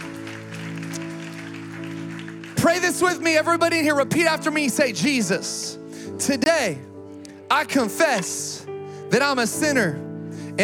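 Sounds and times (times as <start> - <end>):
audience clapping hands: 0.0 - 3.8
speech: 2.6 - 6.9, 7.5 - 10.0.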